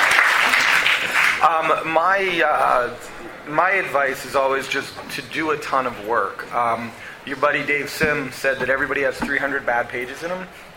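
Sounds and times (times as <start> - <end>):
audience clapping: 0.0 - 1.8
speech: 1.4 - 10.7.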